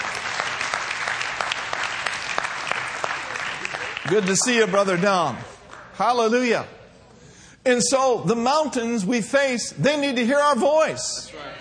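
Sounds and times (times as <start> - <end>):
church audience applause welcoming a guest pastor: 0.0 - 5.9
speech: 4.1 - 6.8, 7.6 - 11.5.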